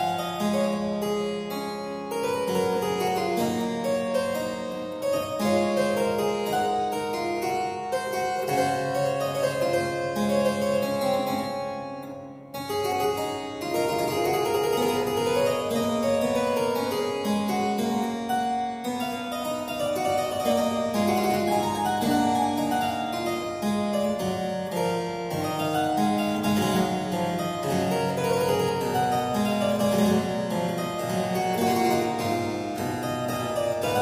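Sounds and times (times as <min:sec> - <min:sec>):
aria played on harpsichord: 0:00.0 - 0:34.0.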